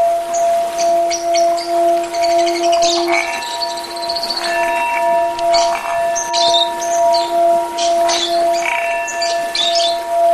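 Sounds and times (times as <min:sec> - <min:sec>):
Oriental magpie-robin song with rattling trills and whistled notes: 0:00.3 - 0:10.3.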